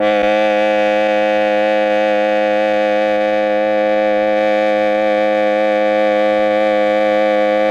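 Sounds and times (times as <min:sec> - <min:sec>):
MEL oboe sound: 0:00.0 - 0:07.6.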